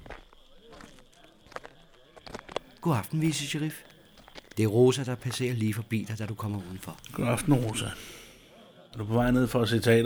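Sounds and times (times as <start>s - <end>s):
quiet footsteps walking down a road: 0.0s - 5.5s
speech: 2.8s - 3.9s, 4.6s - 8.2s, 8.9s - 10.0s.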